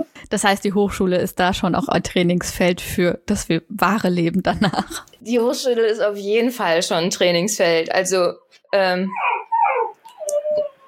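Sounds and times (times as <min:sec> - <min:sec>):
speech: 0:00.3 - 0:09.3
dog barking and whimpering to be let outside: 0:09.1 - 0:10.8.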